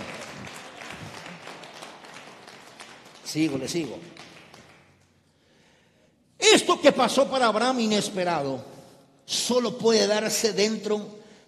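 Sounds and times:
audience applause: 0.0 - 5.0
speech: 3.3 - 4.3, 6.7 - 8.7, 9.3 - 11.4.

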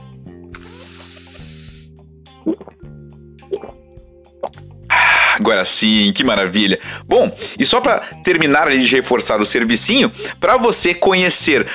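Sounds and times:
sip of water from a bottle: 0.5 - 3.8
speech: 2.4 - 3.8, 5.4 - 11.7.

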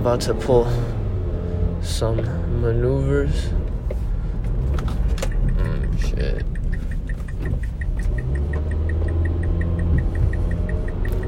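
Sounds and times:
speech: 0.0 - 1.0, 1.8 - 3.6, 6.0 - 6.6
car engine running hard while driven fast: 0.0 - 11.2
high-pitched ticking: 5.2 - 11.2.

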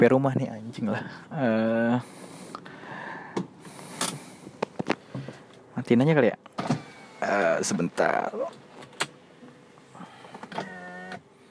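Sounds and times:
speech: 0.0 - 2.2, 5.8 - 8.6, 10.6 - 10.8
car power window motor whirring: 6.6 - 11.4.

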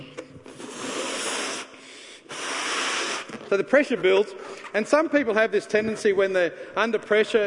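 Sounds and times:
air rushing out of a balloon: 0.5 - 3.5
speech: 3.5 - 7.4.

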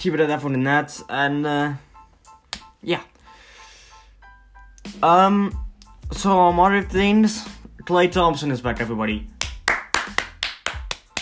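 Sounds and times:
speech: 0.0 - 1.9, 2.8 - 3.1, 4.8 - 9.3
one person clapping hands: 2.5 - 2.7, 9.2 - 11.1.

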